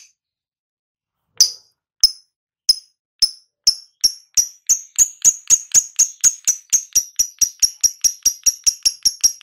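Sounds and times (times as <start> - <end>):
lovebird chattering: 2.1 - 9.4.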